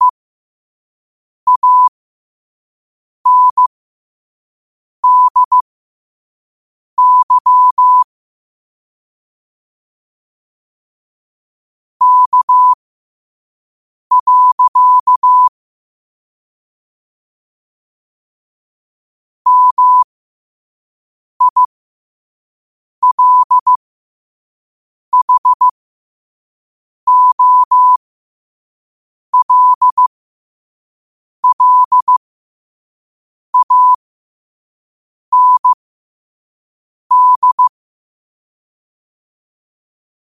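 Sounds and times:
morse code at 5 wpm: 0:01.5 - 0:01.9, 0:03.3 - 0:03.7, 0:05.0 - 0:05.6, 0:07.0 - 0:08.1, 0:12.0 - 0:12.8, 0:14.1 - 0:15.5, 0:19.5 - 0:20.0, 0:21.4 - 0:21.7, 0:23.0 - 0:23.8, 0:25.1 - 0:25.7, 0:27.1 - 0:28.0, 0:29.4 - 0:30.1, 0:31.4 - 0:32.2, 0:33.6 - 0:34.0, 0:35.3 - 0:35.8, 0:37.1 - 0:37.7.

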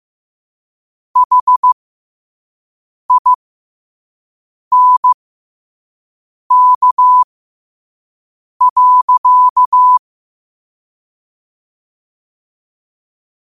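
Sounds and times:
morse code at 5 wpm: 0:01.2 - 0:01.8, 0:03.1 - 0:03.4, 0:04.7 - 0:05.2, 0:06.5 - 0:07.3, 0:08.6 - 0:10.0.

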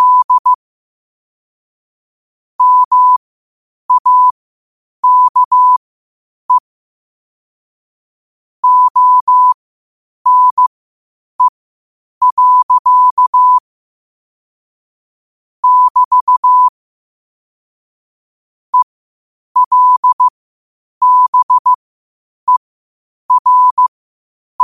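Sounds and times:
morse code beeps at 5 wpm: 0:00.0 - 0:00.6, 0:02.6 - 0:03.2, 0:03.9 - 0:04.3, 0:05.0 - 0:05.8, 0:08.6 - 0:09.6, 0:10.3 - 0:10.6, 0:12.2 - 0:13.6, 0:15.6 - 0:16.7, 0:19.6 - 0:20.3, 0:21.0 - 0:21.8, 0:23.3 - 0:23.9.

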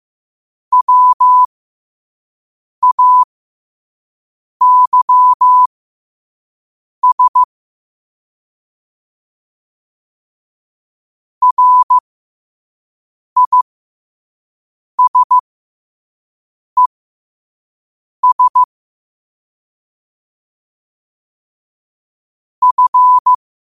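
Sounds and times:
morse code at 5 wpm: 0:00.7 - 0:01.5, 0:02.8 - 0:03.3, 0:04.6 - 0:05.7, 0:07.0 - 0:07.5, 0:11.4 - 0:12.0, 0:13.4 - 0:13.6, 0:15.0 - 0:15.4, 0:18.2 - 0:18.7, 0:22.6 - 0:23.4.

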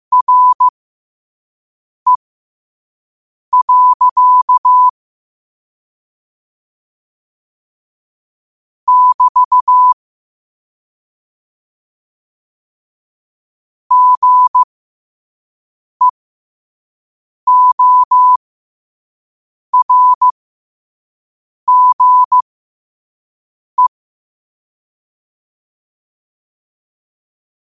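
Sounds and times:
morse code at 5 wpm: 0:00.1 - 0:00.7, 0:03.6 - 0:04.9, 0:08.9 - 0:10.0, 0:13.9 - 0:14.7, 0:17.5 - 0:18.4, 0:19.8 - 0:20.3, 0:21.7 - 0:22.4.

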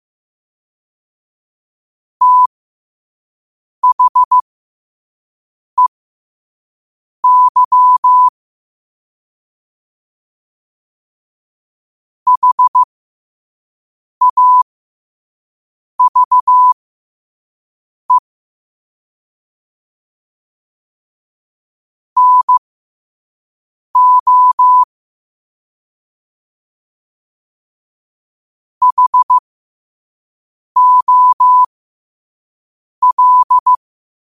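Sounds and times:
morse code at 5 wpm: 0:02.2 - 0:02.5, 0:03.8 - 0:04.4, 0:07.2 - 0:08.3, 0:12.3 - 0:12.9, 0:14.2 - 0:14.6, 0:16.0 - 0:16.8, 0:22.2 - 0:22.6, 0:24.0 - 0:24.9, 0:28.8 - 0:29.4, 0:30.8 - 0:31.7, 0:33.0 - 0:33.8.

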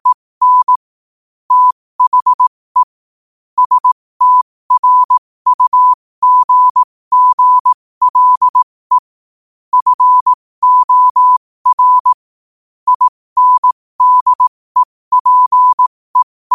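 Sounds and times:
morse code at 5 wpm: 0:00.0 - 0:00.8, 0:01.5 - 0:02.9, 0:03.6 - 0:09.0, 0:09.7 - 0:12.2, 0:12.9 - 0:15.9.

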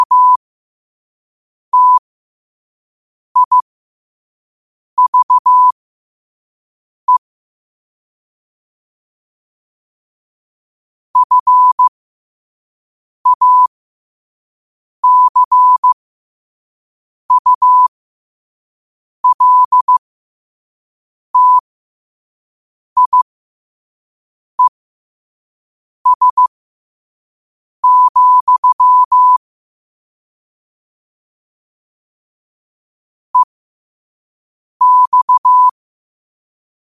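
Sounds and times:
morse code at 5 wpm: 0:00.0 - 0:00.4, 0:01.8 - 0:02.0, 0:03.4 - 0:03.6, 0:05.0 - 0:05.8, 0:11.2 - 0:11.9, 0:13.3 - 0:13.7, 0:15.0 - 0:16.0, 0:17.3 - 0:17.9, 0:19.2 - 0:20.0, 0:21.4 - 0:21.6, 0:23.0 - 0:23.2, 0:26.1 - 0:26.5, 0:27.8 - 0:29.4, 0:34.8 - 0:35.8.

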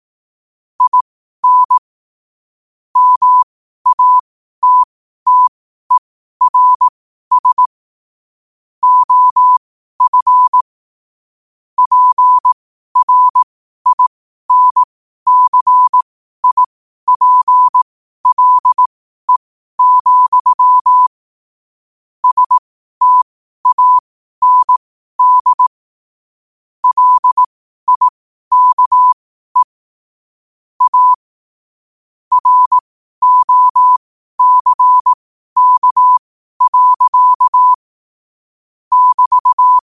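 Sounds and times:
morse code at 5 wpm: 0:00.8 - 0:01.8, 0:03.0 - 0:07.7, 0:08.8 - 0:10.6, 0:11.8 - 0:21.2, 0:22.2 - 0:25.7, 0:26.8 - 0:29.8, 0:30.8 - 0:31.3, 0:32.3 - 0:37.9, 0:38.9 - 0:39.9.

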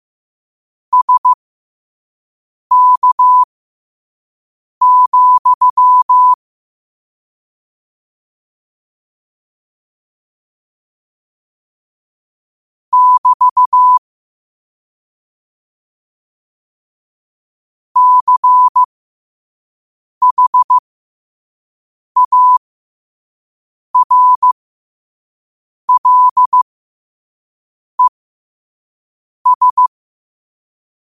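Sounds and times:
morse code at 5 wpm: 0:00.9 - 0:01.4, 0:02.7 - 0:03.5, 0:04.8 - 0:06.4, 0:12.9 - 0:14.0, 0:18.0 - 0:18.9, 0:20.2 - 0:20.8, 0:22.2 - 0:22.6, 0:24.0 - 0:24.6, 0:25.9 - 0:26.6, 0:29.4 - 0:29.9.

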